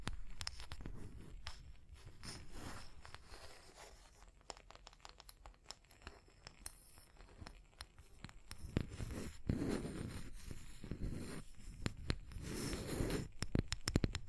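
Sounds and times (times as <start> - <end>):
tapping and scratching: 0.0 - 14.2.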